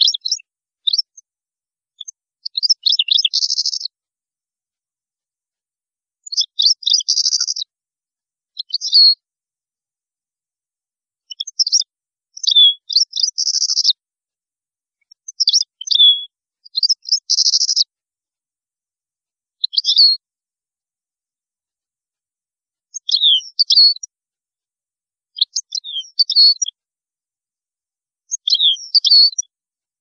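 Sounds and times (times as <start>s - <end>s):
European goldfinch singing: 0.0s - 1.2s, 2.0s - 3.9s, 6.2s - 7.7s, 8.5s - 9.2s, 11.2s - 14.0s, 15.0s - 17.9s, 19.6s - 20.2s, 22.9s - 24.1s, 25.4s - 26.8s, 28.3s - 29.5s.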